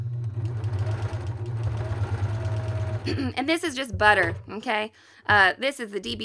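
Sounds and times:
coverstitch machine sewing a hem: 0.0 - 4.6
speech: 3.1 - 6.2.

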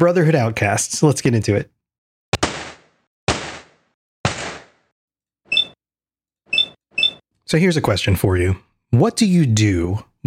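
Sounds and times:
speech: 0.0 - 1.8, 7.5 - 10.2
loud gunshots: 2.4 - 4.9
buzzy high electronic beeps: 5.5 - 5.8, 6.5 - 7.2.

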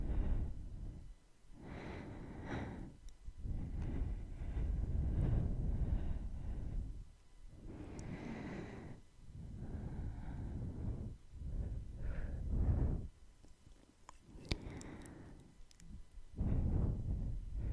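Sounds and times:
soft rushing breaths: 0.0 - 13.1, 14.3 - 17.7
sharp tongue clicks: 13.4 - 16.0.

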